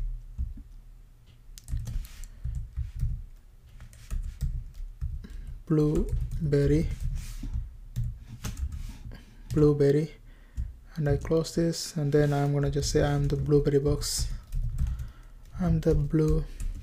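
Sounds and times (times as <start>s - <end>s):
typing on a computer keyboard while HTML code is entered: 1.6s - 9.7s, 12.6s - 16.8s
speech: 5.7s - 7.0s, 9.6s - 10.2s, 11.0s - 14.4s, 15.6s - 16.6s.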